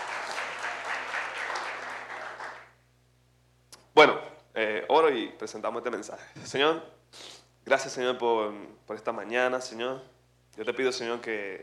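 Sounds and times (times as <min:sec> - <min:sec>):
crowd applause: 0:00.0 - 0:02.7
speech: 0:04.0 - 0:04.2, 0:05.1 - 0:11.6.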